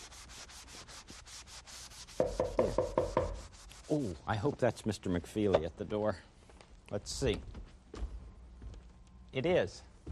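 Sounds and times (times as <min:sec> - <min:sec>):
eraser rubbing out chalk drawing: 0:00.0 - 0:04.2
speech: 0:03.9 - 0:06.3, 0:06.9 - 0:07.6, 0:09.3 - 0:10.1.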